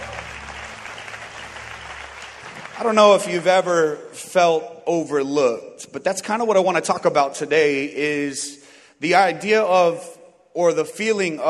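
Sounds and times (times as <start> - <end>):
crowd applause: 0.0 - 3.9
speech: 2.8 - 11.4.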